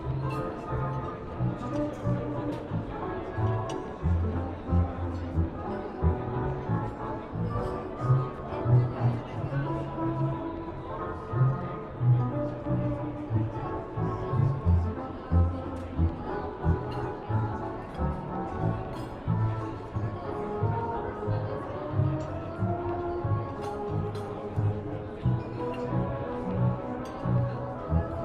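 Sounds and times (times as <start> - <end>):
light talking murmuring in a coffee shop: 0.0 - 28.2
oldie music playing in a coffee shop: 0.1 - 28.2.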